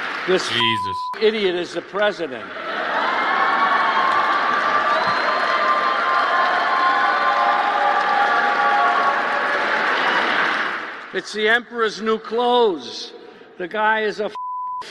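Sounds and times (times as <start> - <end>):
large crowd clapping and cheering: 0.0 - 1.5, 2.4 - 11.2
speech: 0.2 - 3.1, 11.1 - 14.8
shouts: 2.9 - 10.7.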